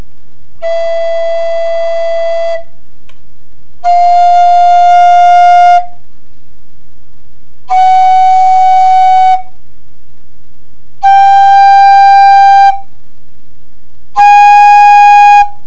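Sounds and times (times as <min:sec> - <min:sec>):
tenor flute: 0:00.6 - 0:02.8, 0:03.8 - 0:06.0, 0:07.6 - 0:09.6, 0:11.0 - 0:12.9, 0:14.1 - 0:15.6.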